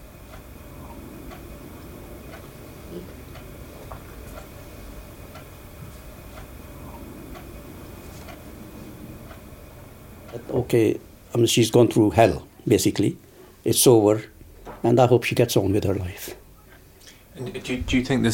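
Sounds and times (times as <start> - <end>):
clock ticking: 0.0 - 10.8
constant low rumbling noise: 0.0 - 18.3
speech: 2.9 - 3.2, 10.5 - 16.4, 17.4 - 18.3.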